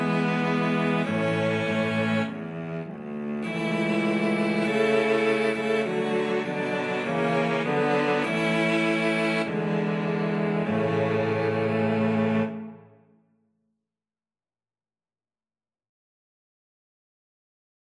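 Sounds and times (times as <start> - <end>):
cello quartet: 0.0 - 13.0.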